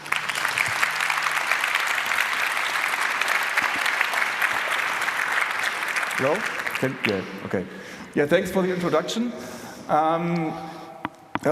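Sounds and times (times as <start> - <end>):
audience applause: 0.0 - 7.6
speech: 6.2 - 10.8.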